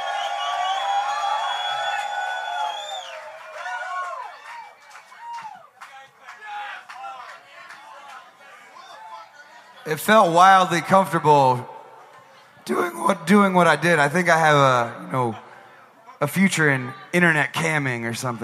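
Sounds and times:
scattered audience clapping: 0:00.0 - 0:09.2
crowd cheering loudly with whoops and yells: 0:00.0 - 0:18.4
speech: 0:09.9 - 0:11.7, 0:12.7 - 0:15.4, 0:16.2 - 0:18.4.

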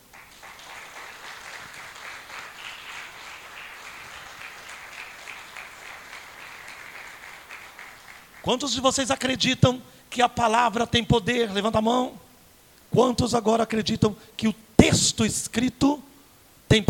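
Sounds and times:
audience applause: 0:00.0 - 0:08.6
speech: 0:08.4 - 0:12.2, 0:12.9 - 0:16.0.

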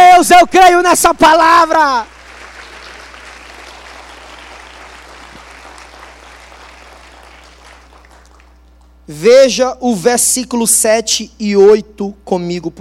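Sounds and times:
speech: 0:00.3 - 0:02.1, 0:09.1 - 0:12.7
audience applause: 0:02.1 - 0:08.6.

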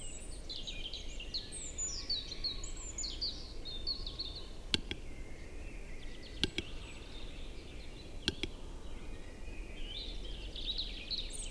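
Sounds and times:
chorus of birdsong in a spring forest during the capercaillie lek: 0:00.6 - 0:11.5
sharp dry clicks: 0:03.9 - 0:09.1.

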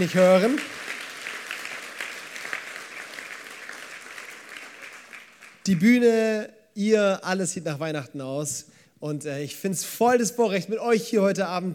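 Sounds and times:
speech: 0:00.0 - 0:00.8, 0:05.6 - 0:11.7
audience applause: 0:00.0 - 0:05.7.

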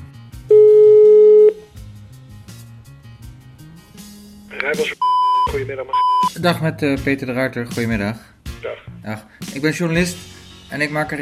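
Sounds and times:
telephone ringing tone of outgoing call: 0:00.5 - 0:01.6
speech: 0:04.6 - 0:11.1.

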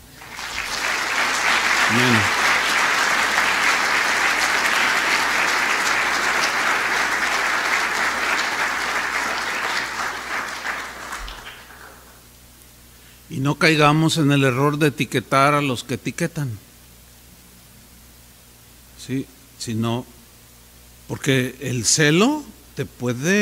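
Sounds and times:
audience applause: 0:00.0 - 0:12.2
speech: 0:01.9 - 0:02.4, 0:13.5 - 0:16.7, 0:19.1 - 0:20.2, 0:21.1 - 0:23.3.

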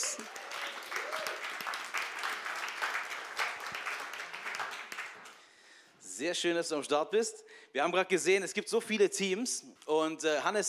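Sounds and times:
audience applause: 0:00.0 - 0:05.4
speech: 0:06.2 - 0:10.6.

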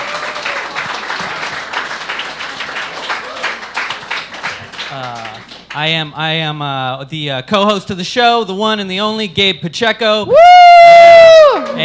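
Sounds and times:
audience applause: 0:00.0 - 0:05.7
speech: 0:05.8 - 0:11.8.

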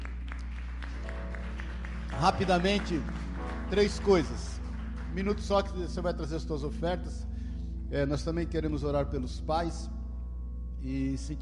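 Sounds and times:
rhythmic audience clapping: 0:00.0 - 0:07.1
low hum: 0:00.0 - 0:11.4
speech: 0:02.2 - 0:04.5, 0:05.2 - 0:07.3, 0:07.9 - 0:10.0, 0:10.8 - 0:11.4.

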